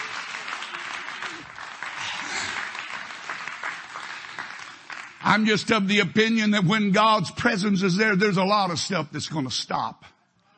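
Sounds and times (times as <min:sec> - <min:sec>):
audience clapping hands in praise: 0:00.0 - 0:06.2
speech: 0:05.2 - 0:10.2.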